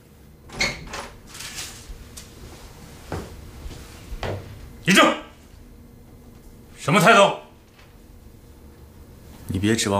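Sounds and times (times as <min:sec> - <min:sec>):
door being opened: 0:00.4 - 0:01.9
speech: 0:04.9 - 0:05.2, 0:06.8 - 0:07.4, 0:09.6 - 0:09.9.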